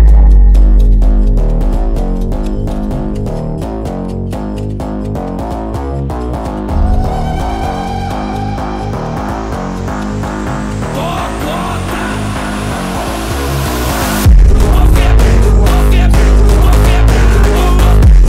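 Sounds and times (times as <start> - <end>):
Brazilian phonk music with boosted bass: 0.0 - 18.2.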